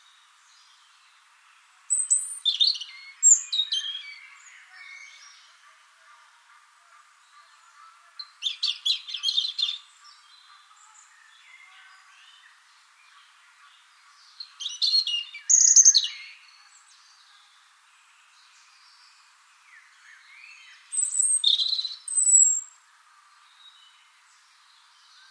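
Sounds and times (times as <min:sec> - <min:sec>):
European robin warbling song: 0:01.9 - 0:05.6, 0:07.2 - 0:17.2, 0:19.7 - 0:22.8.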